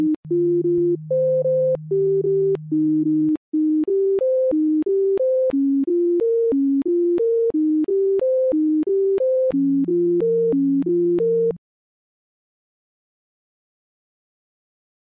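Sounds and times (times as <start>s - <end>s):
sine wave music: 0.0s - 11.6s.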